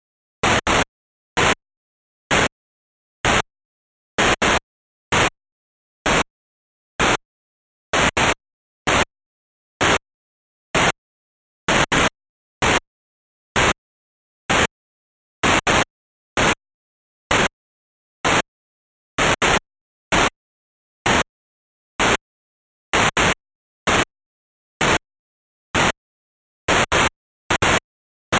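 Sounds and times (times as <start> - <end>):
noise: 0.4 - 1.6, 2.3 - 2.6, 3.2 - 3.5, 4.2 - 5.4, 6.0 - 6.3, 7.0 - 7.2, 7.9 - 9.1, 9.8 - 10.0, 10.7 - 11.0, 11.6 - 12.9, 13.5 - 13.8, 14.5 - 14.8, 15.4 - 16.6, 17.3 - 17.6, 18.2 - 18.5, 19.2 - 20.4, 21.0 - 21.3, 22.0 - 22.2, 22.9 - 24.1, 24.8 - 25.1, 25.7 - 26.0, 26.7 - 28.3.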